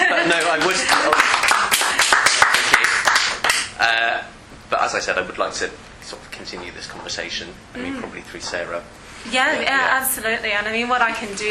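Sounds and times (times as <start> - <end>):
laughter: 0.0 - 1.1
group clapping: 0.0 - 3.8
speech: 3.8 - 11.5.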